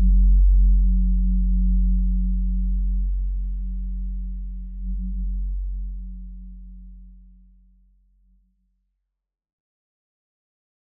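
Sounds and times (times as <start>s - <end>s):
dark ambient music: 0.0s - 7.5s.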